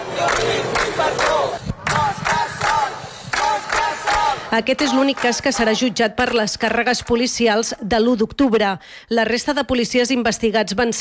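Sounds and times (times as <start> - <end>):
crowd shouting support: 0.0 - 6.0
speech: 4.5 - 11.0.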